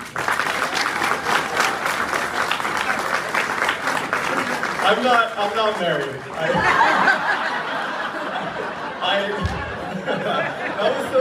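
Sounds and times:
audience applause: 0.0s - 8.3s
speech: 4.9s - 7.0s, 9.0s - 11.1s
laughter: 6.3s - 11.1s.

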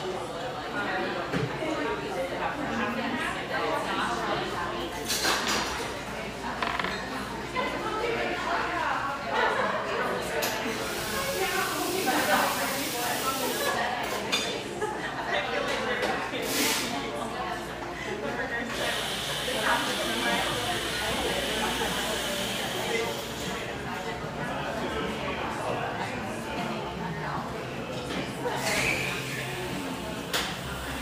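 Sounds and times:
murmur of voices in Pearl District, Portland, Oregon: 0.0s - 31.0s.

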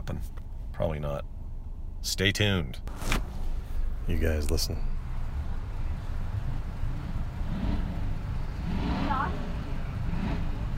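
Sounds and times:
speech: 0.1s - 1.4s, 2.0s - 3.2s, 4.1s - 4.9s
car engine revving: 5.0s - 10.7s.

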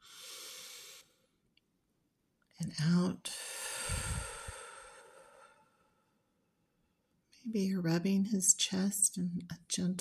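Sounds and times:
slow inhale during a guided breathing exercise: 0.0s - 1.4s, 3.3s - 6.0s
speech: 2.6s - 4.1s, 7.5s - 10.0s.

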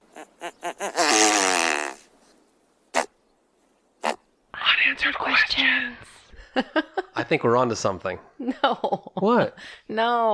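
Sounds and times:
great bustard call: 0.1s - 2.1s, 4.0s - 4.3s
speech: 5.1s - 10.3s.

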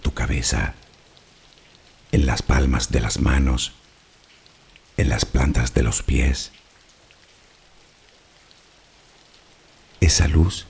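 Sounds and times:
steady rain: 0.0s - 10.6s
speech: 0.3s - 0.9s, 2.3s - 3.8s, 5.0s - 6.6s, 10.0s - 10.6s.

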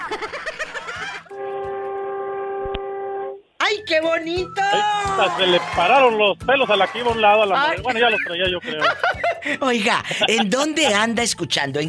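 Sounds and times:
laughter: 0.0s - 1.3s, 6.6s - 11.0s
truck air horn: 1.3s - 3.4s, 5.2s - 7.5s
speech: 3.9s - 11.8s.

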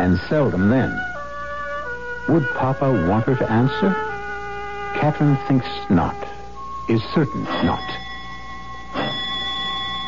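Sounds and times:
speech: 0.0s - 1.1s, 2.3s - 4.1s, 4.9s - 8.0s
doorbell ringing: 7.3s - 10.0s.

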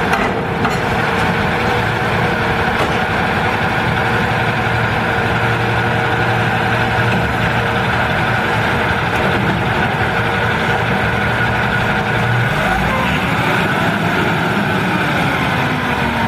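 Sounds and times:
garbage truck engine rumbling: 0.0s - 16.2s.

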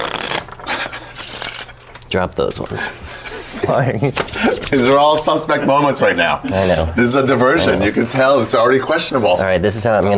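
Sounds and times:
deck of cards being shuffled: 0.0s - 2.1s
speech: 2.1s - 10.1s.

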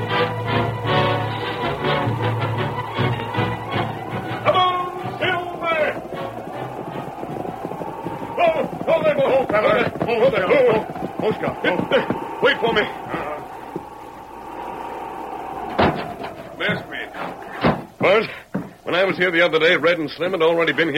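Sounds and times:
galloping hooves of the horses Silver and Scout, radio drama sound effect: 0.0s - 20.9s
urgent voices: 1.6s - 20.9s
speech: 19.2s - 20.9s.

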